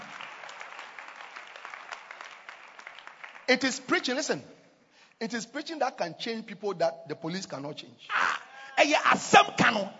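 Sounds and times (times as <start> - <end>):
audience clapping: 0.0 - 3.9
speech: 3.5 - 4.6, 5.2 - 9.9.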